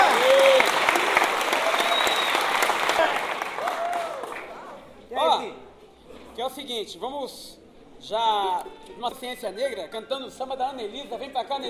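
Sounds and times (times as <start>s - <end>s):
audience applause: 0.0s - 4.7s
speech: 6.8s - 11.6s.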